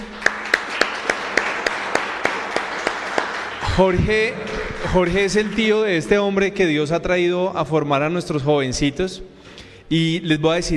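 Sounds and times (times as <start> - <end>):
audience applause: 0.0 - 6.2
speech: 3.8 - 9.3, 9.9 - 10.7.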